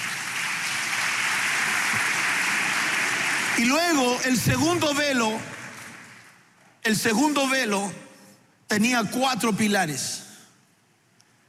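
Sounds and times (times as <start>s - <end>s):
audience applauding: 0.0s - 6.5s
speech: 3.6s - 5.5s, 6.8s - 8.0s, 8.7s - 10.3s.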